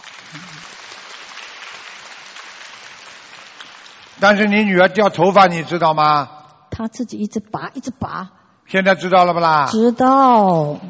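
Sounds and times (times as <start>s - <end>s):
audience applause: 0.0s - 4.5s
speech: 4.2s - 10.8s.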